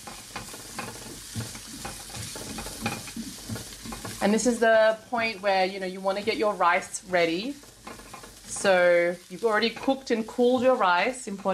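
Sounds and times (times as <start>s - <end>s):
ingredients sizzling in a pan over medium-high heat: 0.0s - 11.5s
speech: 4.2s - 7.7s, 8.6s - 11.5s.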